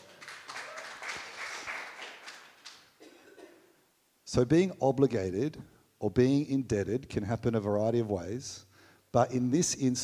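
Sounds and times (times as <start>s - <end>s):
audience applause: 0.0s - 2.9s
speech: 4.3s - 10.0s.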